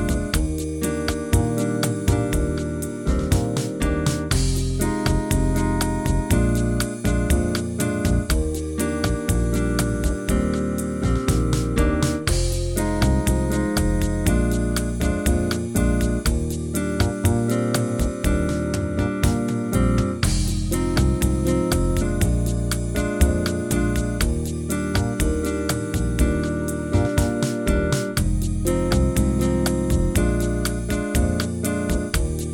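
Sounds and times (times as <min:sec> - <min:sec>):
improvised ii V I jazz chord progression: 0:00.0 - 0:32.5.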